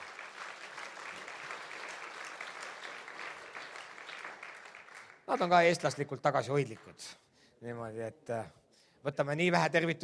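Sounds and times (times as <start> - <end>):
welcoming applause from audience: 0.0 - 6.0
speech: 5.3 - 10.0.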